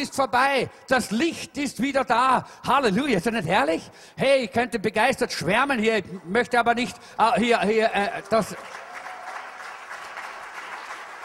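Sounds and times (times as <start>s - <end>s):
speech: 0.0s - 8.8s
audience applause: 8.1s - 11.2s.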